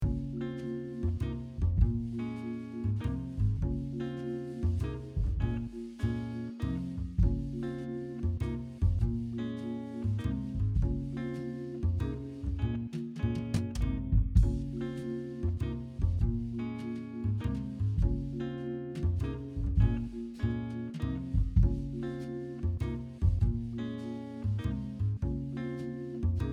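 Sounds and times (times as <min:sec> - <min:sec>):
sad thoughtful music: 0:00.0 - 0:26.5.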